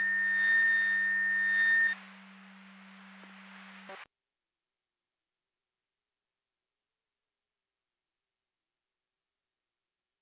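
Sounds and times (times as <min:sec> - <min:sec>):
siren: 0:00.0 - 0:02.1.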